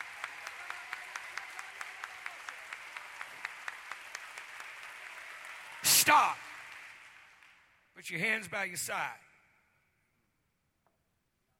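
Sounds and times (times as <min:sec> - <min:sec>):
crowd clapping hands in rhythm: 0:00.0 - 0:08.5
speech: 0:06.1 - 0:06.4, 0:08.0 - 0:09.2.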